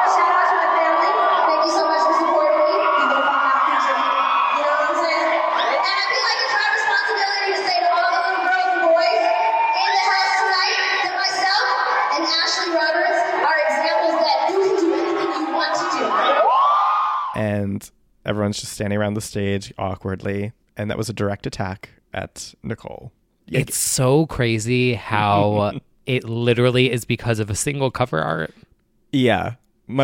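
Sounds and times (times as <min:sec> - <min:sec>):
crowd roaring and cheering: 0:00.0 - 0:17.4
speech: 0:17.8 - 0:30.0.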